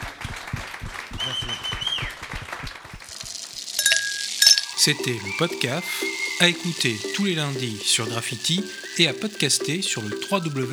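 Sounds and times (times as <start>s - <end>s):
audience applause: 0.0s - 10.7s
speech: 4.8s - 10.7s.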